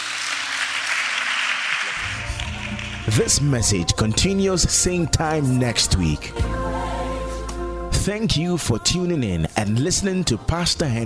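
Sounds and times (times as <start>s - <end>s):
crowd clapping: 0.0s - 4.4s
speech: 3.1s - 6.7s, 8.0s - 11.0s.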